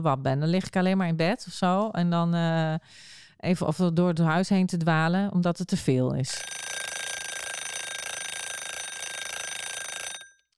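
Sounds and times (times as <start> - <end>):
speech: 0.0 - 6.6
timer alarm ringing with high-pitched electronic trill: 6.4 - 10.4.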